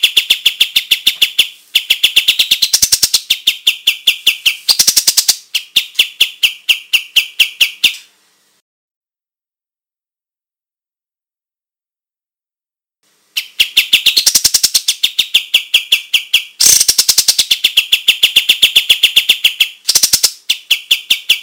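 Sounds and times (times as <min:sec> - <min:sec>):
white-shouldered triller calling: 0:00.0 - 0:08.1, 0:13.3 - 0:21.4.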